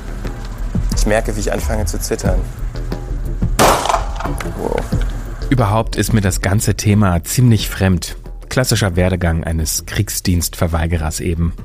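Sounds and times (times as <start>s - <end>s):
speech: 1.0s - 2.8s, 4.3s - 11.6s
gunshot from a firearm at shooting range: 3.6s - 4.4s.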